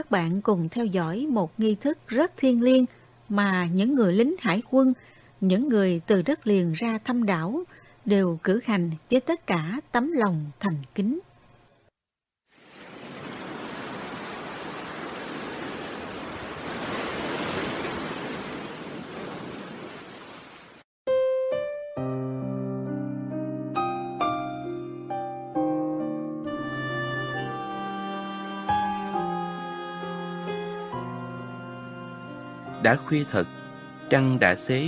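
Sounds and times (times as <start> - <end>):
speech: 0.0 - 11.3, 32.9 - 34.8
gentle calm sea waves at night: 12.5 - 20.8
calm melodic notes: 21.1 - 34.8.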